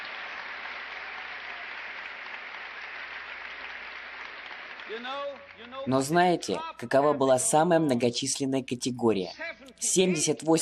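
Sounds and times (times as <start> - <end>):
audience applause in a hall: 0.0 - 6.3
speech: 4.9 - 10.6.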